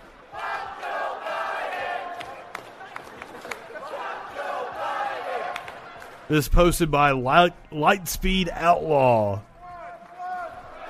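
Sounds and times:
crowd chanting in unison: 0.0 - 6.2
handclaps: 2.1 - 3.8, 5.5 - 6.2
speech: 6.3 - 9.5.

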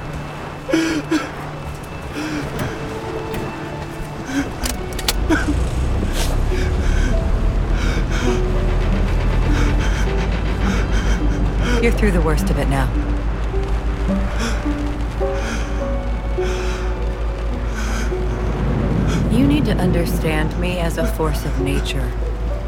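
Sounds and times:
engines starting and rumbling: 0.0 - 22.6
light clicks: 2.4 - 5.6
speech: 11.8 - 13.2, 19.7 - 22.3.

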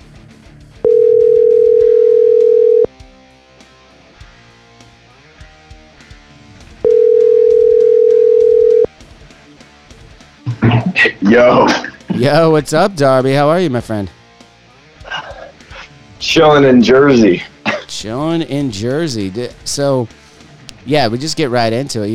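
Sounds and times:
faint music: 0.8 - 2.9, 3.6 - 22.1
phone ringback tones: 0.8 - 2.9, 6.8 - 8.9
speech: 11.3 - 14.2, 16.4 - 20.2, 20.8 - 22.1.

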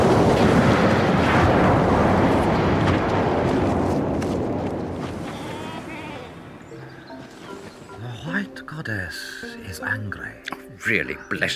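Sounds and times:
avalanche rumble: 0.0 - 8.3
speech: 10.9 - 11.5.

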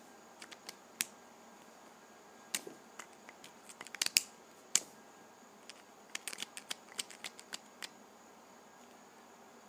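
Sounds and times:
Sharpies being opened: 0.4 - 0.8, 2.6 - 4.3, 5.6 - 8.0.

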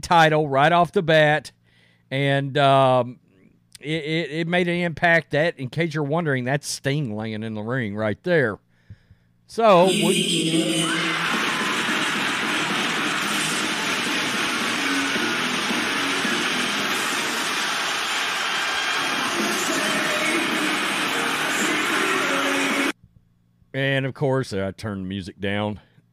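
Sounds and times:
speech: 0.0 - 3.2, 3.8 - 8.6, 9.5 - 11.1, 23.8 - 26.1
wrestling crowd roaring and cheering at Edge's AEW debut: 9.8 - 22.9.

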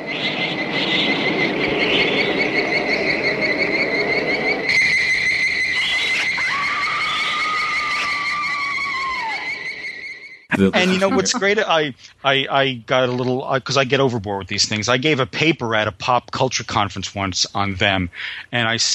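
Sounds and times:
giant-ant sound effect, high-pitched shrill trilling whine: 0.2 - 11.9
sliding squeal: 4.0 - 10.5
laughter: 10.5 - 13.8
speech: 10.6 - 18.9.

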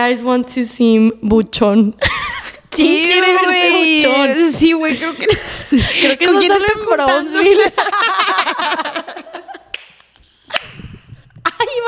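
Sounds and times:
speech: 0.0 - 9.5
laughter: 4.8 - 9.8
loud sharp hand claps: 9.7 - 11.1.

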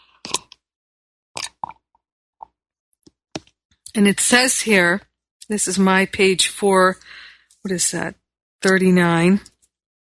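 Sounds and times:
person sipping mate tea: 0.0 - 0.7, 1.4 - 1.8
speech: 4.0 - 9.5.

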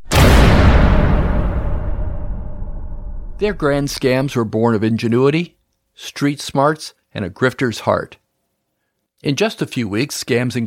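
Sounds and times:
heavy steel door slamming shut: 0.0 - 4.2
speech: 3.4 - 8.2, 9.2 - 10.6.

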